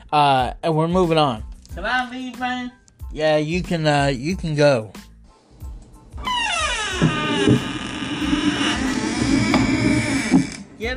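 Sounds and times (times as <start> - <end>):
speech: 0.1 - 5.0, 10.8 - 10.9
creaking door in need of oil: 5.8 - 10.9.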